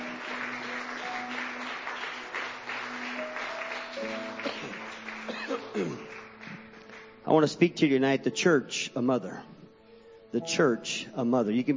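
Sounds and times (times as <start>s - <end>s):
audience clapping hands in praise: 0.0s - 7.4s
speech: 7.3s - 9.5s, 10.3s - 11.7s.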